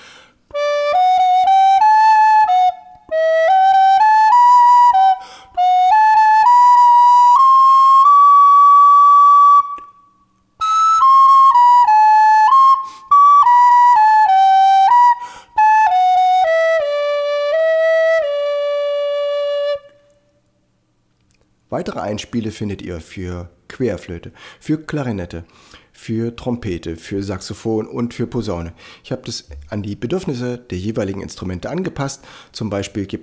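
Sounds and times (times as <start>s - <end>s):
recorder playing melody in D major: 0.5s - 10.0s, 10.6s - 20.0s
speech: 21.8s - 33.2s.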